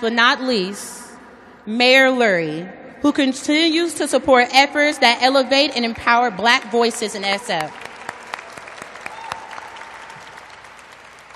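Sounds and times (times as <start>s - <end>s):
speech: 0.0s - 1.0s, 1.6s - 7.8s
crowd clapping: 6.8s - 11.3s.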